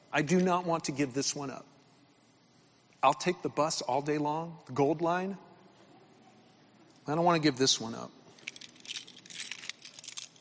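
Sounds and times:
speech: 0.1 - 1.8, 3.0 - 5.5, 7.1 - 8.2
bunch of keys jangling: 8.3 - 10.3.

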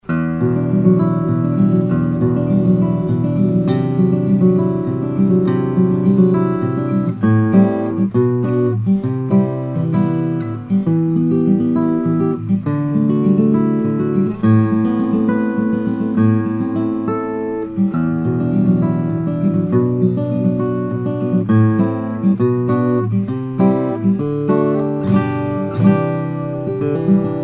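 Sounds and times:
steel-string flattop guitars: 0.0 - 27.4.

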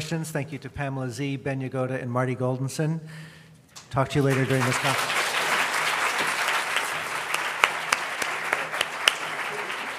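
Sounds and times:
speech: 0.0 - 5.2
audience applause: 4.2 - 9.9.

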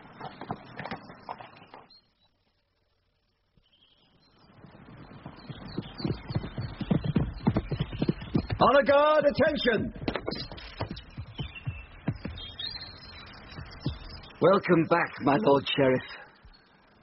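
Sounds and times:
horse hooves clip-clopping: 0.0 - 2.0, 4.6 - 14.4
speech: 8.6 - 10.4, 14.4 - 16.2.

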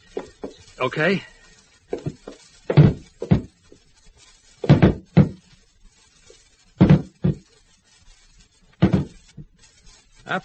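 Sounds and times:
speech: 0.8 - 1.3, 10.3 - 10.4
table rammed against wooden door panels: 4.7 - 5.4, 6.8 - 7.4, 8.8 - 9.2.

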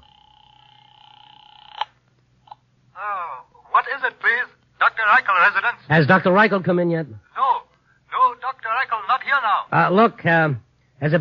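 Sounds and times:
phone tone during a call from a phone booth: 0.0 - 1.9
speech: 3.0 - 7.2, 9.4 - 11.1.

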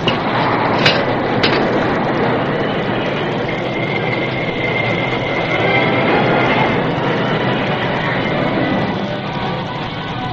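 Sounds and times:
sharp clanks of a braking train: 0.0 - 2.0
old work engine train braking to stop: 0.0 - 10.3.

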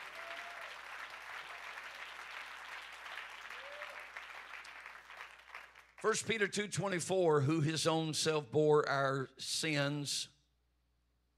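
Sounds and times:
audience applause: 0.0 - 6.0
speech: 6.0 - 10.4.

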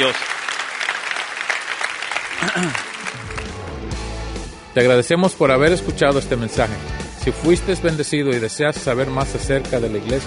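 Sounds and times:
speech: 0.0 - 0.4, 2.5 - 2.9, 4.8 - 10.2
audience applause: 0.0 - 3.9.

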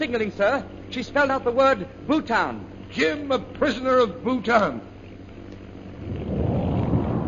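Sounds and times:
speech: 0.0 - 4.9
bomb explosion: 6.0 - 7.2.

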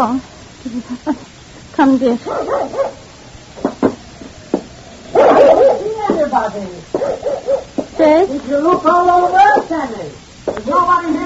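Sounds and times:
speech: 0.0 - 3.0, 6.3 - 11.2
dog Forty barking: 2.2 - 3.1, 5.1 - 6.0, 7.0 - 7.8.

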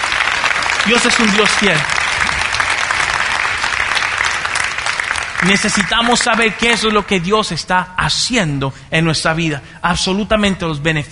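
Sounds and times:
audience applauding: 0.0 - 7.3
speech: 0.8 - 2.0, 5.4 - 11.1.

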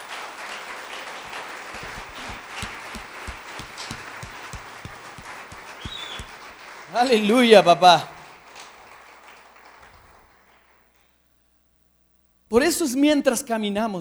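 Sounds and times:
audience applause: 0.0 - 10.8
speech: 6.9 - 8.1, 12.8 - 14.0.

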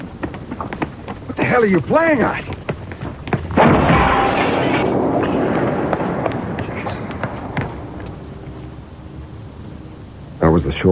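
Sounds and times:
debris rumbling and crackling after a bomb blast: 0.0 - 9.7
speech: 0.6 - 0.8, 1.5 - 2.5, 10.6 - 10.9
bomb exploding in a Chicago apartment: 3.6 - 8.5.

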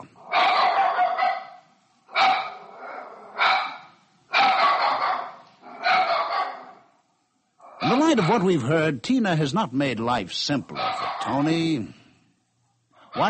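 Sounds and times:
dog barking: 0.3 - 6.8, 10.7 - 11.5
speech: 8.1 - 12.0.

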